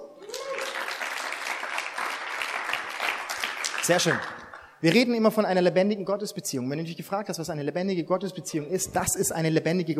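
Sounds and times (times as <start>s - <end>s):
applause: 0.2s - 4.8s
speech: 3.9s - 9.9s.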